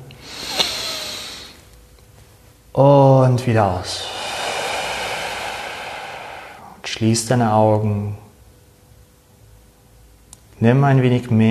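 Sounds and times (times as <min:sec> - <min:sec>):
deep inhale during meditation: 0:00.0 - 0:01.7, 0:03.8 - 0:06.9
speech: 0:02.8 - 0:04.1, 0:07.0 - 0:08.2, 0:10.6 - 0:11.4.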